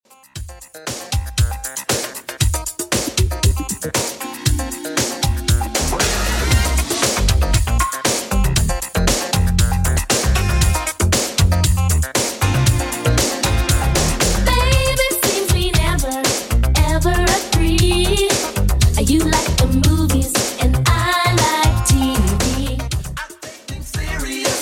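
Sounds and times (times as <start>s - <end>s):
Redrum 80s drum beat: 0.3s - 24.5s.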